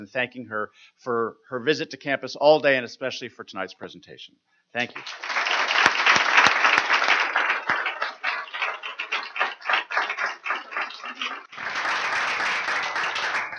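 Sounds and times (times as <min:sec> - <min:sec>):
speech: 0:00.0 - 0:05.3
audience applause: 0:04.8 - 0:13.5.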